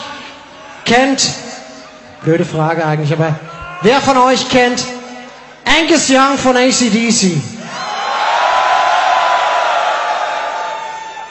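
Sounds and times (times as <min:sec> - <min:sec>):
speech: 0:00.9 - 0:01.5, 0:02.2 - 0:05.0, 0:05.7 - 0:07.6
restrained audience applause: 0:07.7 - 0:11.2.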